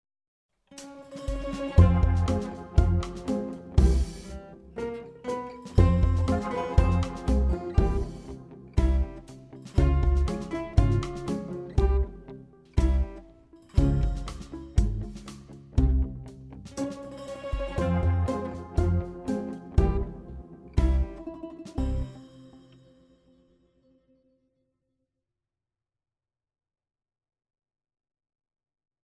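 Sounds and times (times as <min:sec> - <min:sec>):
quirky comedy guitars: 0:00.8 - 0:22.8.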